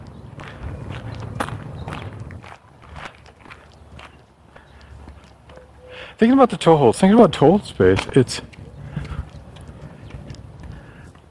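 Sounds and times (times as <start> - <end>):
footsteps of a person walking: 0.4 - 5.9, 7.8 - 11.2
speech: 6.2 - 8.5.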